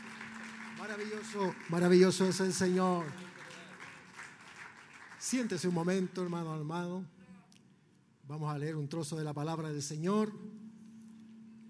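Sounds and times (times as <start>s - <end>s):
audience applause: 0.0s - 6.1s
speech: 0.8s - 3.3s, 5.3s - 7.2s, 8.3s - 10.6s.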